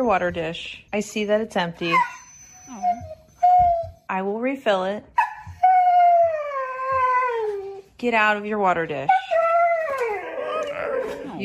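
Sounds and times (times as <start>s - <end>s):
speech: 0.0s - 3.1s, 4.1s - 5.2s, 8.0s - 9.3s
dog whining for water: 1.2s - 4.1s, 5.2s - 8.0s, 9.1s - 11.4s.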